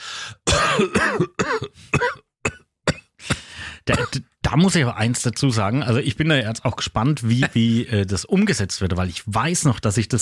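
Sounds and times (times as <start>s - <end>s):
person fake coughing: 0.4s - 4.2s
speech: 0.8s - 1.3s, 3.9s - 10.2s.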